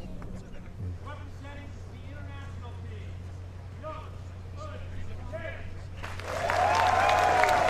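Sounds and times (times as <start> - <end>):
golf crowd applause for Y.E. Yang's introduction: 6.0 - 7.6.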